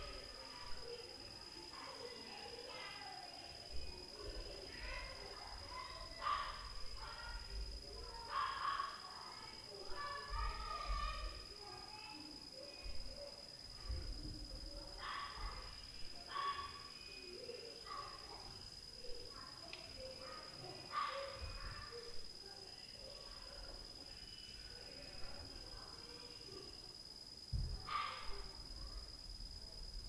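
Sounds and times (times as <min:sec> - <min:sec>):
children at night: 0:00.0 - 0:30.0
dog at night: 0:06.2 - 0:07.2, 0:15.0 - 0:15.7, 0:20.2 - 0:22.0, 0:27.8 - 0:28.5
door slamming at night: 0:27.5 - 0:27.9.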